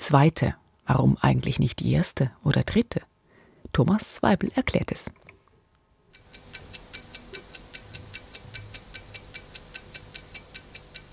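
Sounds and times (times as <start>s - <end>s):
speech: 0.1s - 5.2s
clock ticking: 6.1s - 11.1s.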